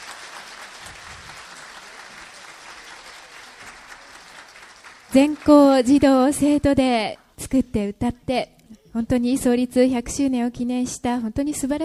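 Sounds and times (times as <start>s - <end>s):
audience applause: 0.0s - 5.9s
speech: 5.1s - 11.8s.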